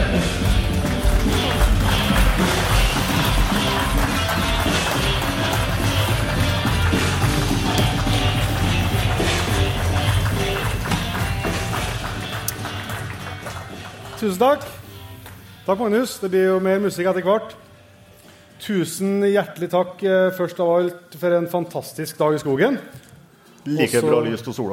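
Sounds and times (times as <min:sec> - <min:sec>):
audience applause: 0:00.2 - 0:14.8
speech: 0:14.3 - 0:14.8, 0:15.7 - 0:17.6, 0:18.6 - 0:24.7.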